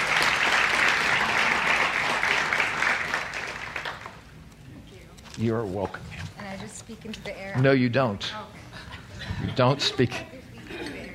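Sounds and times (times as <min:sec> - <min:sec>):
audience applause welcoming a speaker to the stage: 0:00.0 - 0:04.3
speech: 0:05.4 - 0:08.6, 0:09.4 - 0:10.4
laughter: 0:08.7 - 0:11.1.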